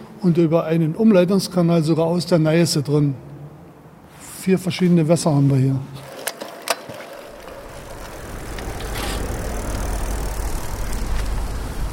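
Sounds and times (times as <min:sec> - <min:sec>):
speech: 0:00.2 - 0:03.3, 0:04.4 - 0:06.1
bicycle tires rolling over asphalt: 0:04.8 - 0:11.9.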